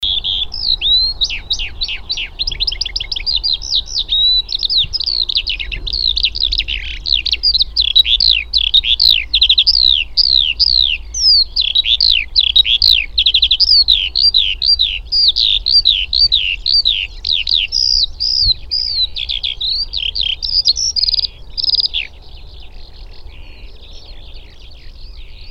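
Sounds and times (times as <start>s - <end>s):
Eurasian skylark singing: 0.0s - 25.4s.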